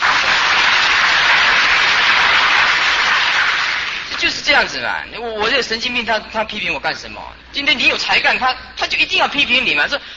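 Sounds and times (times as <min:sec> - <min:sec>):
audience applause: 0:00.0 - 0:04.1
speech: 0:04.6 - 0:10.1.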